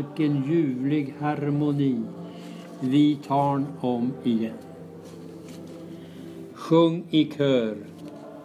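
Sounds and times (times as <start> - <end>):
choir bass part: 0.0 - 6.6.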